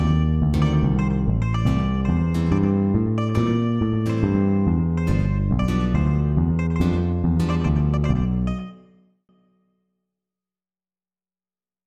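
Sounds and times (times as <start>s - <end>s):
MIDI blues music: 0.0s - 8.7s.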